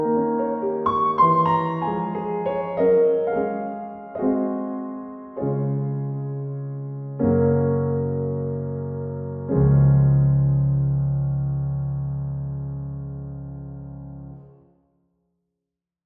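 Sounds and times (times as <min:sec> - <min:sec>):
piano étude variation: 0:00.0 - 0:14.7.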